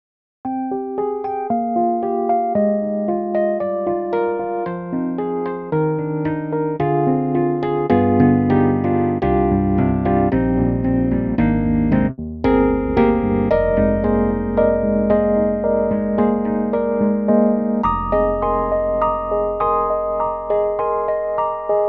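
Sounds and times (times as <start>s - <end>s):
Rhodes electric piano: 0.4s - 21.8s.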